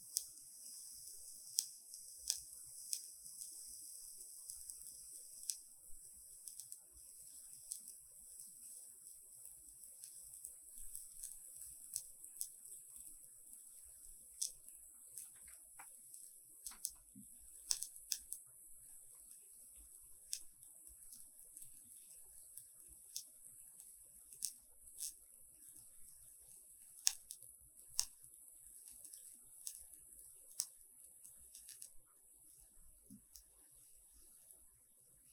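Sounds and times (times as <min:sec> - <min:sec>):
small soft clicks and crackly ticks: 0:00.0 - 0:18.5, 0:19.1 - 0:34.7
steady bright hiss: 0:00.0 - 0:18.8.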